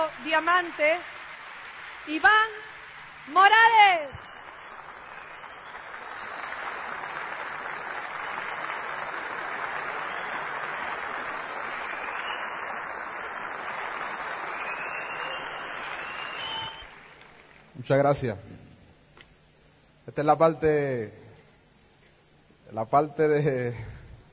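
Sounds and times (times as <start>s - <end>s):
speech: 0.0s - 1.2s, 2.0s - 4.3s, 17.9s - 18.6s, 20.1s - 21.2s, 22.7s - 23.9s
crowd applause: 0.0s - 3.4s, 4.2s - 17.6s.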